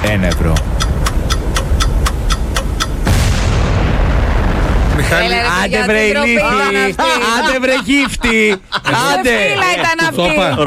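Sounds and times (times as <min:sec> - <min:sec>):
bomb explosion effect in a radio game: 0:00.0 - 0:00.3, 0:03.0 - 0:06.4
timed bomb ticking in a radio game: 0:00.0 - 0:03.2
speech: 0:00.1 - 0:01.0, 0:05.1 - 0:10.6
laughter: 0:06.2 - 0:10.6.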